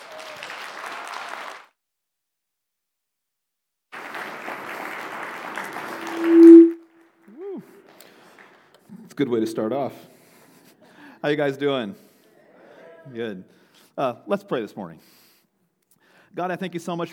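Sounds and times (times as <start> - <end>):
audience applause welcoming a pastor: 0.0 - 1.7, 3.9 - 6.4
loud tonal ping: 6.0 - 6.8
warbling tone: 6.0 - 6.8
speech: 9.2 - 10.1, 11.2 - 12.0, 13.1 - 15.2, 16.4 - 17.1.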